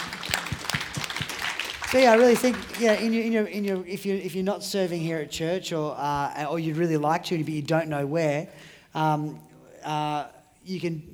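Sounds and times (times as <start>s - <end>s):
audience applause: 0.0s - 3.3s
speech: 1.9s - 11.1s.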